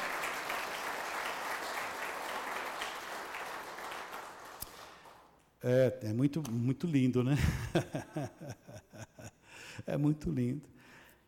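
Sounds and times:
audience applauding: 0.0 - 5.4
speech: 5.6 - 11.0.

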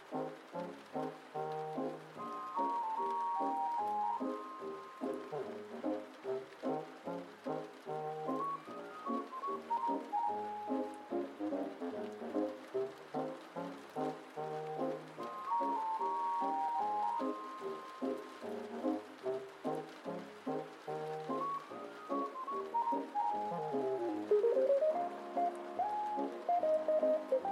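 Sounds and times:
faint steady hiss: 0.0 - 27.5
muffled oldies music from another room: 0.0 - 27.5.

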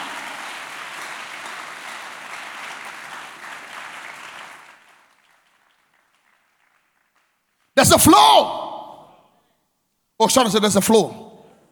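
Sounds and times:
hands clapping aggressively: 0.0 - 7.7
speech: 7.8 - 8.6, 10.2 - 11.3.

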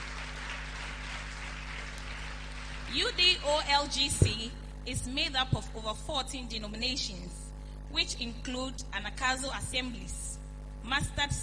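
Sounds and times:
audience clapping hands: 0.0 - 3.3
speech: 2.9 - 10.2, 10.8 - 11.4.

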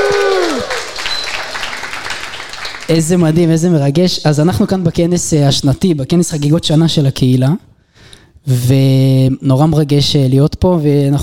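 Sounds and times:
live audience applause at a community anniversary conference: 0.0 - 3.2
speech: 2.9 - 7.7, 8.4 - 11.2.

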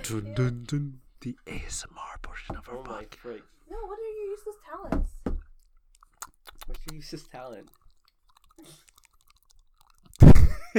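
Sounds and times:
speech: 0.1 - 5.2, 6.7 - 7.8
man making an armpit noise with his arm: 10.2 - 10.6.

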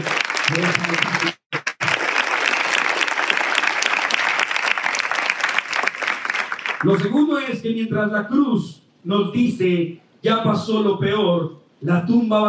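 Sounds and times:
speech: 0.0 - 1.4, 6.8 - 12.4
audience applause: 0.0 - 7.1.

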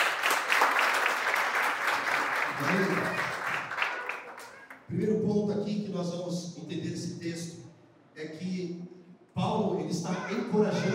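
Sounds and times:
applause: 0.0 - 4.9
speech: 2.6 - 3.2, 4.9 - 5.3, 6.0 - 7.6, 8.2 - 8.8, 9.8 - 10.9.

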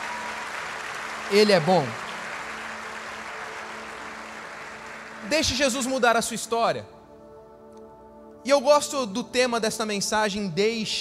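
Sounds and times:
audience applause: 0.0 - 5.5
speech: 1.3 - 2.0, 5.3 - 7.0, 8.4 - 10.9.

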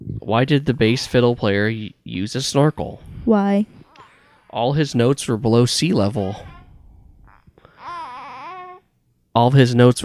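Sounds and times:
speech: 0.2 - 3.8, 4.5 - 6.5, 9.4 - 10.0
baby babbling: 3.7 - 4.6, 6.2 - 8.9.

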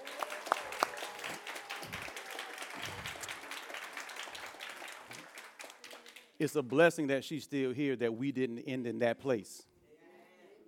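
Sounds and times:
audience clapping: 0.0 - 6.8
speech: 6.4 - 9.7.

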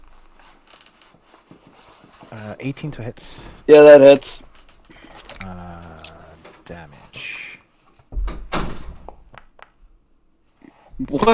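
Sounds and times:
speech: 2.3 - 4.5
door opening with a heavy thump and low rattle: 8.1 - 9.2.

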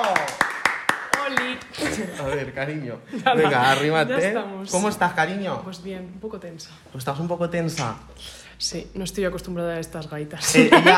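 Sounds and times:
applause: 0.0 - 1.7
speech: 2.0 - 10.9
laughter: 10.5 - 10.9.

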